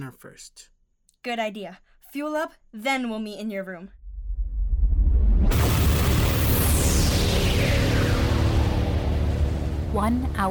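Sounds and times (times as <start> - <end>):
speech: 0.0 - 4.0, 9.9 - 10.4
storm thunder boom effect: 4.0 - 10.4.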